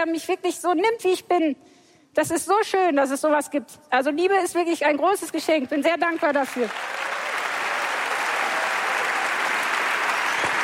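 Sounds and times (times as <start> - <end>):
speech: 0.0 - 7.1
audience clapping: 6.1 - 10.6.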